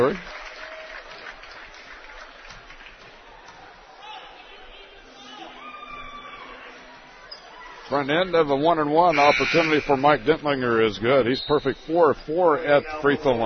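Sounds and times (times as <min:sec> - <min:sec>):
speech: 0:00.0 - 0:00.3, 0:07.9 - 0:13.4
basketball crowd applause: 0:00.0 - 0:04.0
basketball crowd chatter and raised voices: 0:03.0 - 0:13.4.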